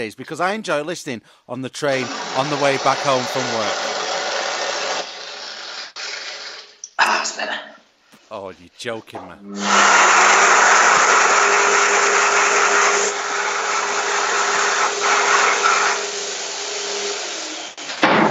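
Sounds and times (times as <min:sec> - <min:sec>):
speech: 0:00.0 - 0:03.9, 0:07.4 - 0:07.7, 0:08.3 - 0:10.4
electric hand dryer blowing: 0:02.0 - 0:05.1, 0:09.5 - 0:16.2.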